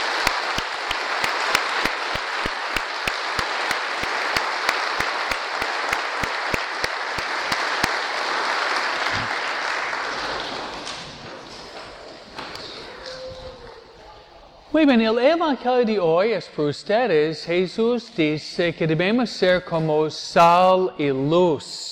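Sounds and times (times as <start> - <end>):
applause: 0.0 - 13.8
speech: 14.8 - 21.9.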